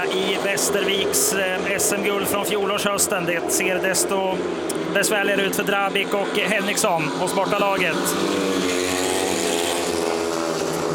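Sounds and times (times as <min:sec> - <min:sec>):
speech: 0:00.0 - 0:09.2
speedway motorcycle engines racing: 0:00.0 - 0:10.9.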